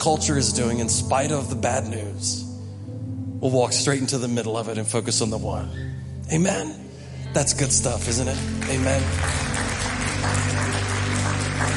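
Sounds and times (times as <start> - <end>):
speech: 0.0 - 2.5, 3.4 - 9.6
audience clapping: 7.6 - 11.7.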